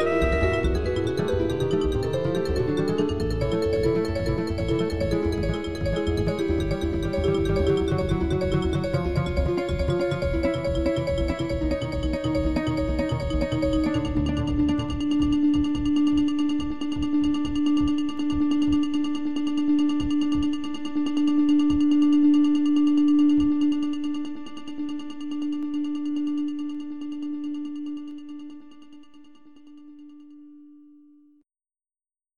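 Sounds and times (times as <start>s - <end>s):
soprano saxophone in synth jazz piece: 0.0s - 1.3s
vibraphone in synth jazz piece: 0.0s - 14.6s
bass in synth jazz piece: 0.0s - 29.2s.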